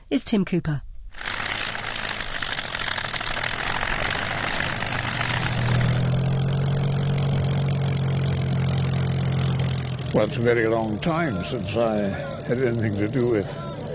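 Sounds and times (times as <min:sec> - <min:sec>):
speech: 0:00.1 - 0:00.9, 0:10.2 - 0:13.7
Spitfire and Hurricane aircraft engines flying: 0:01.2 - 0:13.9.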